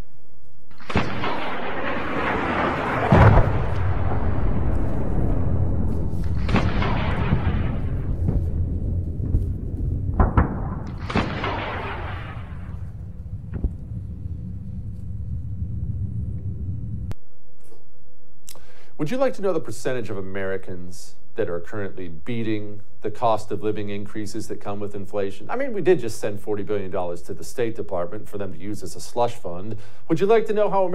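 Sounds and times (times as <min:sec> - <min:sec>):
sustained low rumble: 0:00.0 - 0:17.6
explosions from video game footage of missiles shooting down Russian MiG jets: 0:00.7 - 0:17.2
speech: 0:19.1 - 0:30.9.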